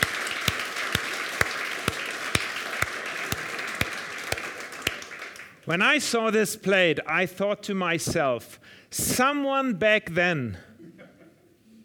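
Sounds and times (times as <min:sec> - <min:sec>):
audience applause: 0:00.0 - 0:05.6
speech: 0:05.7 - 0:10.7.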